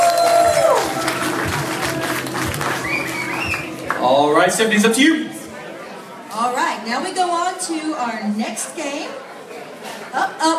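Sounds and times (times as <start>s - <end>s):
audience applauding and cheering for a guest at a live pop culture game show at a convention: 0.0s - 4.8s
speech: 4.1s - 5.3s, 6.4s - 9.2s, 10.1s - 10.5s.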